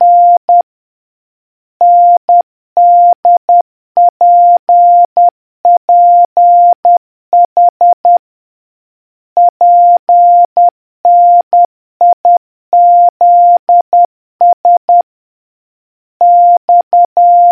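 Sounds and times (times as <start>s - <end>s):
morse code beeps: 0.0s - 0.6s, 1.8s - 3.4s, 4.0s - 8.2s, 9.4s - 15.0s, 16.2s - 17.4s.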